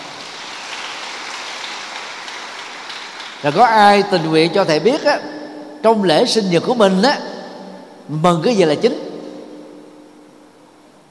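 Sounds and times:
children clapping: 0.0s - 4.4s
speech: 3.4s - 7.3s, 8.1s - 9.0s.

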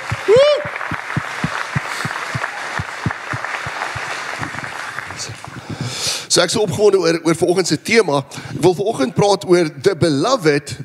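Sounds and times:
audience applause: 0.0s - 6.2s
speech: 6.4s - 10.8s.

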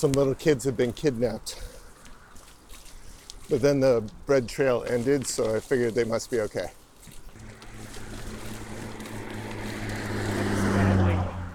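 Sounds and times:
speech: 0.0s - 1.7s, 3.5s - 6.8s
big Jeep towing a trailer driving past: 7.4s - 11.5s.

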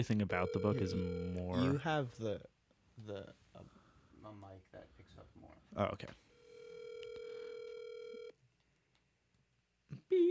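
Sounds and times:
speech: 0.0s - 6.2s
electronic telephone tone: 0.2s - 1.6s, 6.5s - 8.3s.

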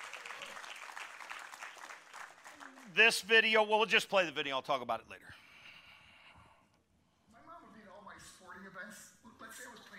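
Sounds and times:
audience applause: 0.0s - 3.2s
speech: 3.0s - 5.2s.

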